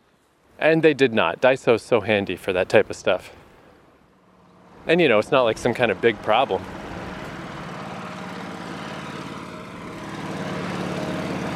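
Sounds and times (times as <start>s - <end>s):
speech: 0.6s - 3.4s, 4.8s - 6.8s
small tractor driving past: 4.1s - 11.5s.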